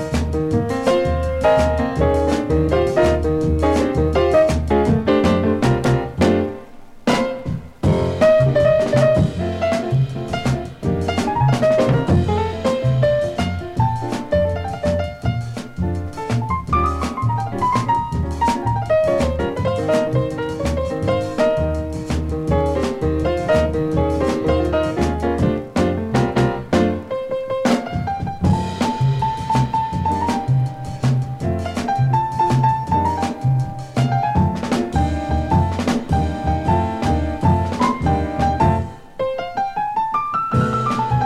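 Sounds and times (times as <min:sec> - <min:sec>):
Latin jazz soul boogaloo music: 0:00.0 - 0:41.2.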